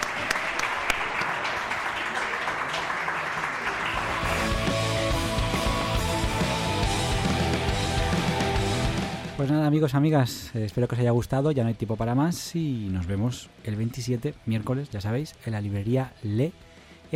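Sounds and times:
audience applause: 0.0 - 9.4
speech: 9.4 - 17.1.

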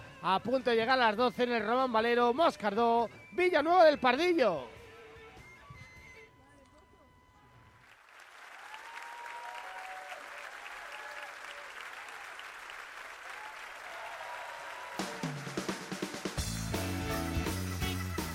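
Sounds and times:
speech: 0.2 - 4.8
background applause from stadium crowd: 7.8 - 18.3.

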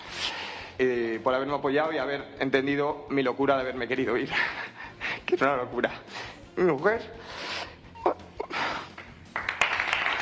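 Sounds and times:
breaths: 0.0 - 0.8, 6.1 - 6.5, 7.2 - 7.9, 8.5 - 9.1
speech: 0.8 - 7.4
crowd applauding: 8.9 - 10.2.

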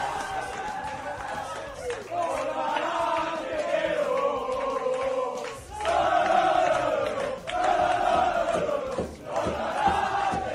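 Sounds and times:
team shouting and chanting in dressing room: 0.0 - 10.5.

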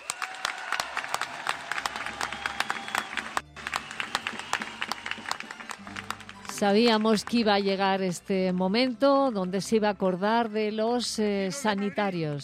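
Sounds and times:
crowd applause: 0.0 - 7.4
speech: 6.6 - 12.4.

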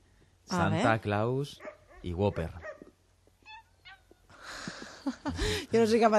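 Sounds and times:
speech: 0.5 - 2.6, 5.0 - 6.1
puppies barking: 1.6 - 2.9.

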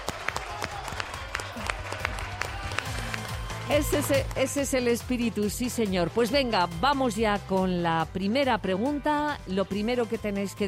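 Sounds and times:
audience applause: 0.0 - 4.6
speech: 3.7 - 10.6.

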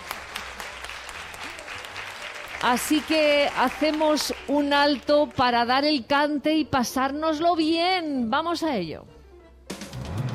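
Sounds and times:
studio audience scattered hand claps for two teams on a radio quiz: 0.0 - 5.1
speech: 2.6 - 9.1.

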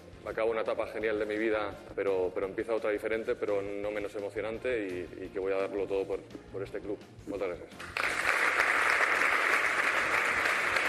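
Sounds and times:
speech: 0.2 - 8.2
audience applause: 7.8 - 10.8.

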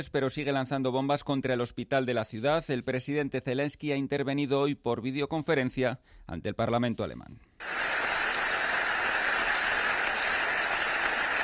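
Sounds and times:
speech: 0.0 - 8.0
large crowd applause in a parliament: 7.6 - 11.4.

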